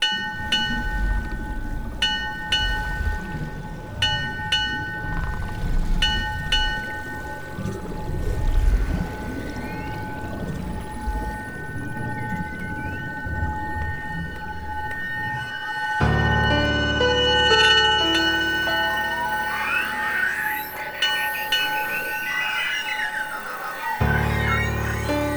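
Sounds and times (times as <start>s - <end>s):
bells ringing: 0.0s - 7.9s, 11.7s - 25.3s
whale calls: 0.0s - 25.3s.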